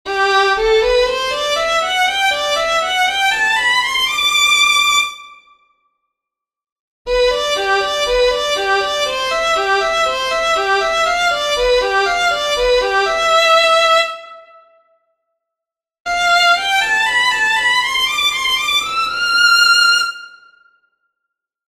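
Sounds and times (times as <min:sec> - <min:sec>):
violin playing with full fingering: 0:00.1 - 0:04.5, 0:07.1 - 0:14.4, 0:16.1 - 0:20.3.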